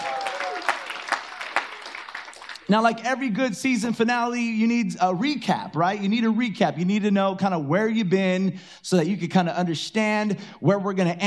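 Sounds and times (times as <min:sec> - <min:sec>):
crowd clapping: 0:00.0 - 0:03.0
speech: 0:02.7 - 0:11.2.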